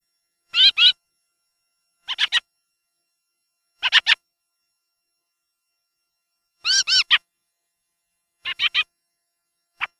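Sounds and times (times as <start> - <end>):
fieldfare calls: 0.5 - 1.0, 2.0 - 2.4, 6.6 - 7.2, 8.4 - 8.9.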